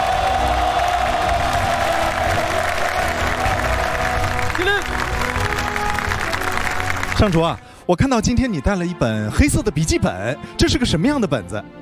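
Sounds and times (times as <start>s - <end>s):
audience applause and cheering: 0.0s - 7.7s
speech: 7.2s - 11.8s.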